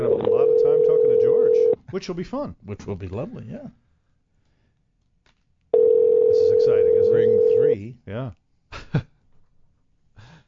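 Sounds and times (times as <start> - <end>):
telephone tone ringing on a call: 0.0 - 1.8, 5.8 - 7.7
speech: 2.0 - 3.8, 6.7 - 9.1.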